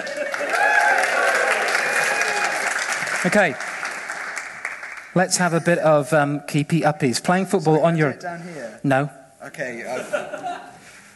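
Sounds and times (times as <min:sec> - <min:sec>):
laughter: 0:00.0 - 0:00.6, 0:09.8 - 0:11.0
audience applause: 0:00.0 - 0:05.2
speech: 0:03.2 - 0:03.7, 0:05.2 - 0:10.7.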